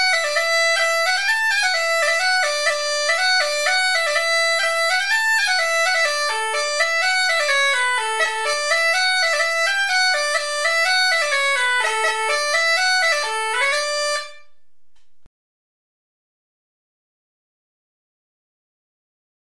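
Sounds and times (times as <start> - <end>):
Maraichine branle folk dance tune: 0.0 - 15.3.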